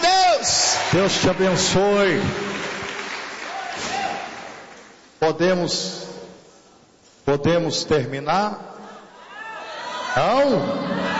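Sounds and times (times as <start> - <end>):
church congregation clapping to welcome the pastor: 0.0 - 5.0
speech: 0.9 - 2.5, 5.2 - 6.0, 7.3 - 8.7, 10.1 - 11.1.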